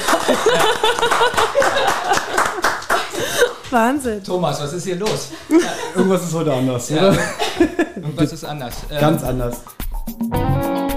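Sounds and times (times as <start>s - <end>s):
hand clapping: 0.0s - 3.7s
laughter: 0.0s - 3.7s, 5.3s - 8.4s
speech: 0.3s - 2.8s, 3.7s - 10.5s.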